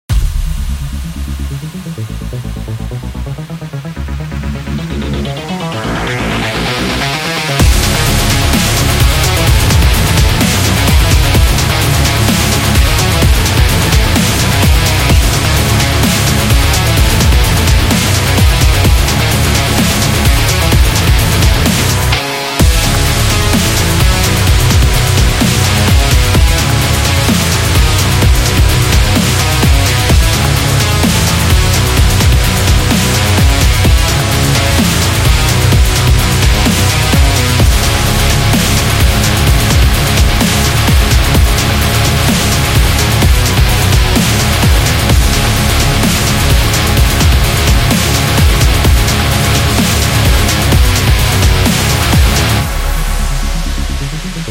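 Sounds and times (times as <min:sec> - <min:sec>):
rock dubstep music: 0:00.1 - 0:54.4.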